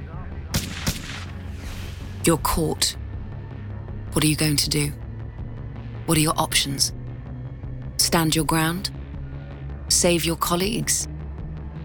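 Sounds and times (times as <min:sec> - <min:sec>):
gunfire: 0:00.5 - 0:01.4
speech: 0:02.3 - 0:03.0, 0:04.2 - 0:05.0, 0:06.1 - 0:07.0, 0:08.1 - 0:09.0, 0:09.9 - 0:11.2.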